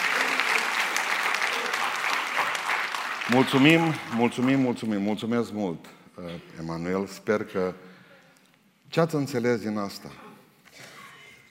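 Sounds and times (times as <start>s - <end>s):
audience applause: 0.0s - 4.9s
speech: 3.3s - 7.9s, 8.9s - 10.2s.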